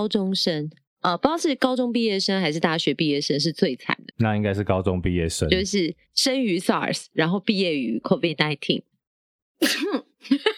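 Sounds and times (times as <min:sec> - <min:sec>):
speech: 0:00.0 - 0:08.9, 0:09.6 - 0:10.5
person sneezing: 0:09.6 - 0:10.1.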